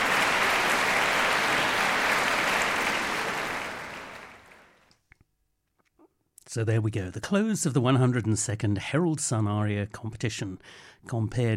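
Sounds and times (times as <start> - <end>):
audience applauding: 0.0 - 4.8
speech: 6.5 - 11.5.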